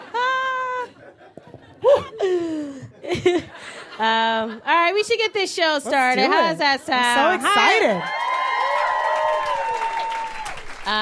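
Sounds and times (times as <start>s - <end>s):
speech: 1.8s - 2.5s, 3.2s - 8.2s, 10.9s - 11.0s
audience applauding: 7.2s - 11.0s
whistles and cheers: 7.7s - 10.9s.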